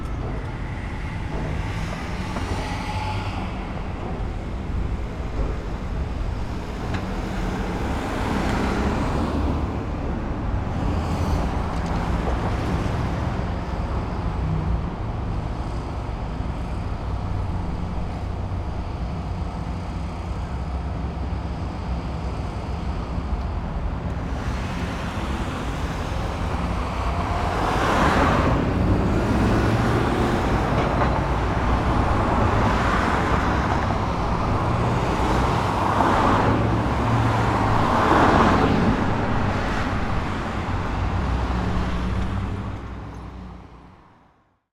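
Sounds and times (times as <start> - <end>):
traffic at an intersection: 0.0 - 44.5.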